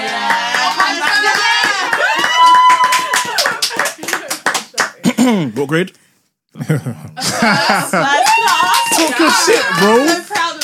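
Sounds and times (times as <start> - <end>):
people clapping: 0.0 - 5.2, 7.4 - 10.6
speech: 5.4 - 10.4
laughter: 6.6 - 8.4.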